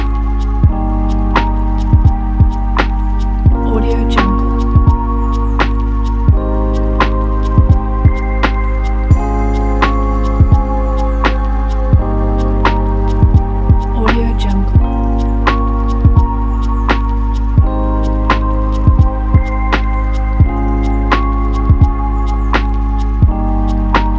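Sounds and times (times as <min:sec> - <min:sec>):
dreamy chill hip hop: 0:00.0 - 0:24.1.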